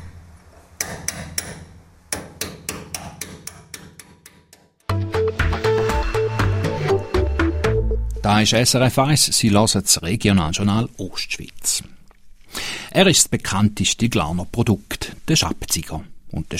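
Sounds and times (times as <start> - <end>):
chisel or hammer blows during restoration of the Vadian statue: 0.8 - 4.9
music: 4.8 - 8.5
speech: 8.3 - 11.9, 12.9 - 16.5.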